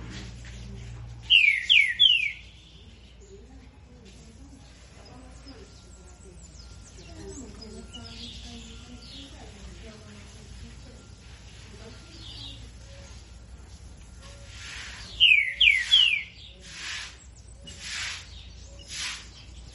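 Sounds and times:
Green-winged saltator singing after its moult: 1.3 - 2.8, 14.2 - 19.7.

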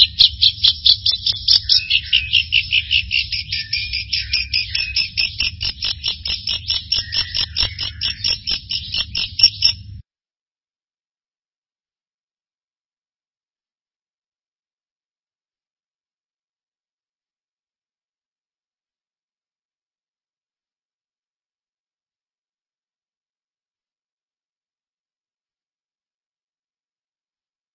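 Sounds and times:
bird singing: 0.0 - 10.0.

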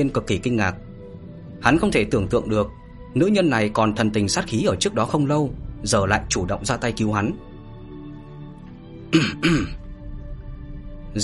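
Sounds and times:
speech: 0.0 - 0.8, 1.6 - 7.5, 9.1 - 9.8
dry cough: 9.1 - 9.8
throat clearing: 9.1 - 9.8.

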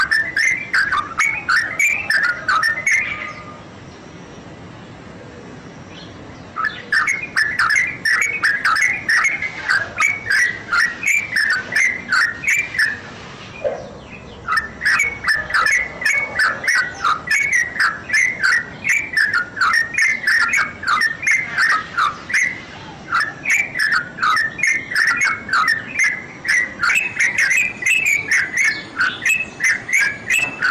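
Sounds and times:
bird whistling: 0.0 - 3.6, 6.5 - 30.6.

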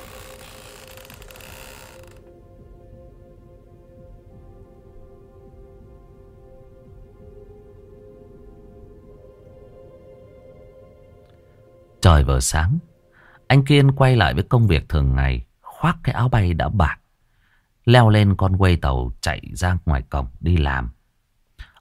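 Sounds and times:
harsh broadband scraping: 0.0 - 2.2
old wooden cart slats creaking as an elderly man rolls it: 0.0 - 2.2
speech: 12.1 - 12.9, 13.5 - 17.0, 17.8 - 21.0.

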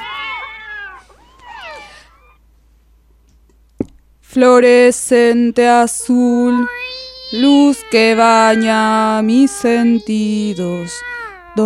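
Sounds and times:
cats meowing: 0.0 - 2.4, 6.5 - 11.6
speech: 4.4 - 11.6.

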